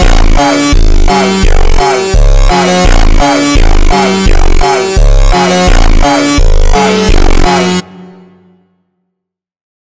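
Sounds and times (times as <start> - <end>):
slowed funk music: 0.0 - 7.8.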